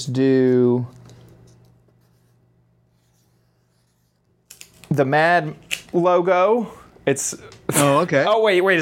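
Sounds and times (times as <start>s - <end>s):
speech: 0.0s - 1.0s, 4.9s - 8.8s
red marker scratching on a pink sticky note: 1.9s - 4.3s.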